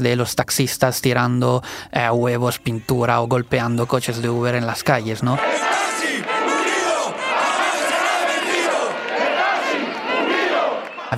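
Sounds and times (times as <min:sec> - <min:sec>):
speech: 0:00.0 - 0:05.9
angry chanting: 0:05.3 - 0:11.1
crowd shouting at a violent protest: 0:05.4 - 0:11.1.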